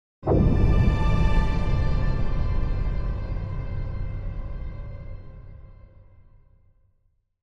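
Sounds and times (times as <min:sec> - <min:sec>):
distant orchestral symphonic blast hit: 0:00.3 - 0:06.0.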